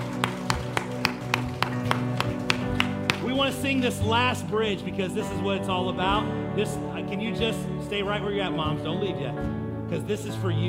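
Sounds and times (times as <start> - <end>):
audience applause: 0.0 - 3.6
speech: 3.5 - 10.6.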